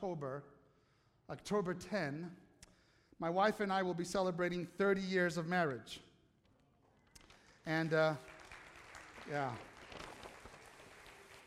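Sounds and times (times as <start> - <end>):
speech: 0.0 - 0.6, 1.3 - 2.5, 3.2 - 6.1, 7.6 - 8.3, 9.3 - 9.7
weak applause: 7.2 - 11.4.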